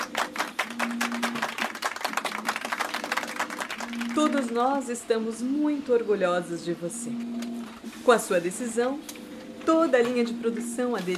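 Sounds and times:
small group applauding a colleague: 0.0s - 4.8s
speech: 4.2s - 11.1s.

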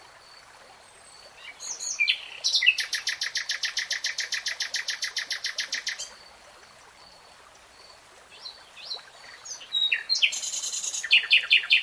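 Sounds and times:
nightingale song: 1.4s - 6.2s, 8.3s - 11.8s.

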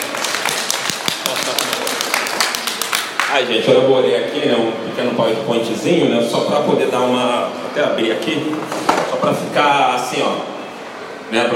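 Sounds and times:
audience at a talk clapping: 0.0s - 3.5s
speech: 3.4s - 10.6s, 11.3s - 11.5s.

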